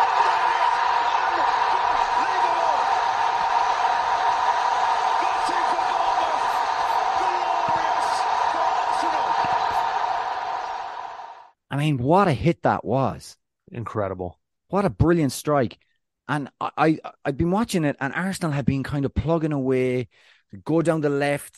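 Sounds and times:
football stadium crowd noise at winning goal: 0.0 - 11.5
speech: 11.8 - 21.5.

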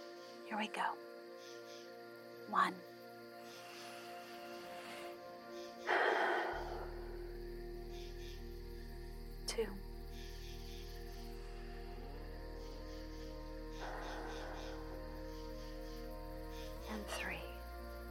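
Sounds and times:
faint low drone: 0.0 - 18.1
speech: 0.5 - 1.2, 2.5 - 2.9, 9.6 - 9.9
slow deep breaths before sleep: 3.4 - 7.8, 13.0 - 16.2.

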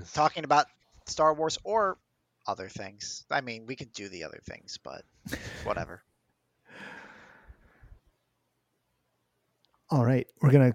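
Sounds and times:
speech: 0.1 - 6.1, 9.9 - 10.7
sharp inhale before speaking: 6.7 - 8.0.

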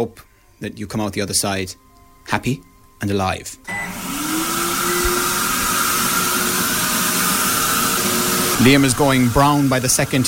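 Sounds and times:
speech: 0.0 - 4.2, 8.6 - 10.2
spray tan machine spraying on a back: 4.0 - 10.2.

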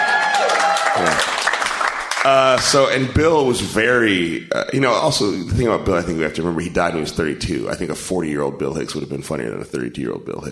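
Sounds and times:
live audience cheering and applauding: 0.0 - 3.6
speech: 2.2 - 10.5.

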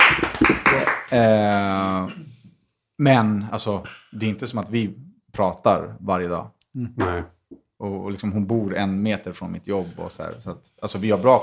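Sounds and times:
applause: 0.0 - 1.6
speech: 1.1 - 2.2, 3.0 - 11.4.

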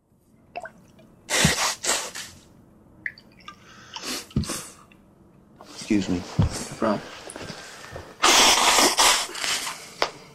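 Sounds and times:
sneeze: 1.3 - 2.3, 8.2 - 9.3
speech: 5.9 - 7.2.

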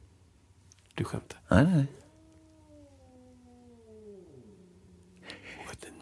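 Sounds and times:
speech: 1.0 - 2.0
cats vocalizing outside: 1.8 - 5.8.

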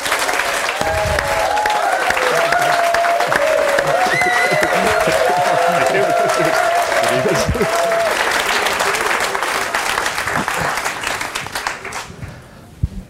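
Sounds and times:
live show audience applauding a guest's entrance on stage: 0.0 - 12.5
live show audience whooping and cheering: 0.1 - 11.0
laughter: 2.1 - 11.0.

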